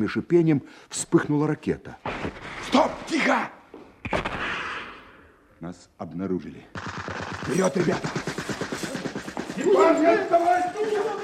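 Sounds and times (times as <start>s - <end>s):
speech: 0.0s - 3.6s, 5.6s - 8.4s, 9.6s - 11.2s
gunshots: 6.7s - 11.2s
bullets whizzing by: 6.8s - 10.2s.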